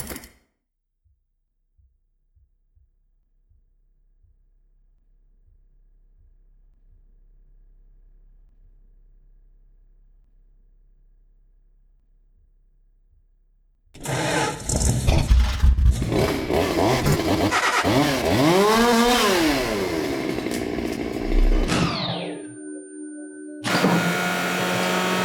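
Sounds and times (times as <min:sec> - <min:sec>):
engine: 0:14.0 - 0:22.5, 0:23.6 - 0:25.2.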